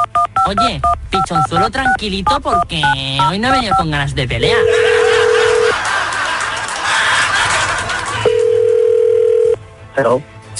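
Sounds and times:
speech: 0.5s - 5.0s, 10.0s - 10.5s
laughter: 4.4s - 8.7s
telephone dial tone while placing call: 4.6s - 5.7s, 8.3s - 9.6s.

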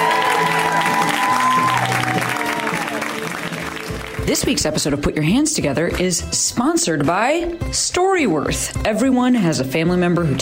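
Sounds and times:
audience applause welcoming a comedian to the stage: 0.0s - 4.6s
speech: 4.3s - 10.4s.

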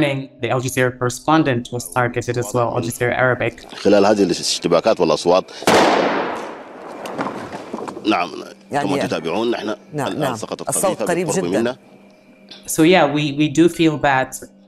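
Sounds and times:
speech: 0.0s - 6.2s, 8.0s - 11.9s, 12.5s - 14.6s
laughter: 1.8s - 5.8s, 8.1s - 11.8s
single loud gunshot during fighting in Sudan: 5.6s - 7.8s.

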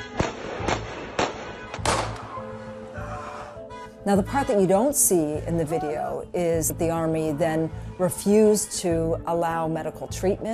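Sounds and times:
gunshots fired by a soldier at a Palestinian man after a traffic accident: 0.0s - 2.4s
speech: 4.0s - 10.5s.

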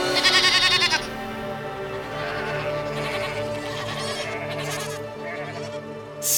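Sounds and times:
young goat bleating loudly: 0.1s - 1.2s, 2.0s - 5.8s.

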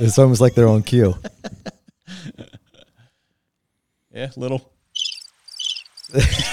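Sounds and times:
speech: 0.0s - 1.6s, 4.2s - 4.7s, 6.1s - 6.5s
laughter: 0.0s - 3.0s, 6.1s - 6.5s
crickets chirping: 4.9s - 6.5s.

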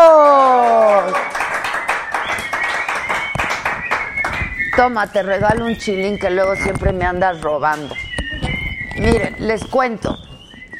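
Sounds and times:
clapping applause: 0.0s - 5.6s
speech: 4.8s - 8.0s, 9.0s - 10.3s.

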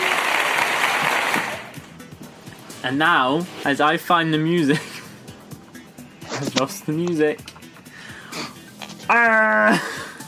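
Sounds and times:
applause: 0.0s - 1.7s
speech: 2.8s - 4.9s, 6.4s - 7.5s, 9.1s - 10.0s.

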